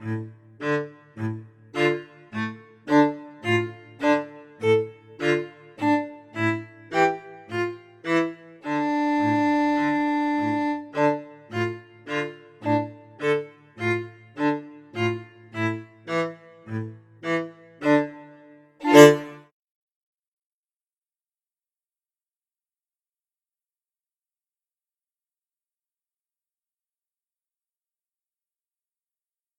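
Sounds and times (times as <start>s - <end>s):
klezmer music at a festival: 0.0s - 19.5s.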